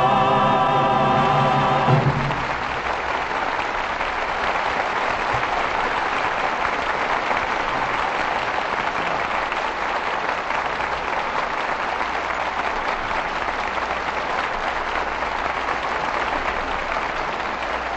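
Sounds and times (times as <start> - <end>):
studio audience applause: 0.2 - 17.9.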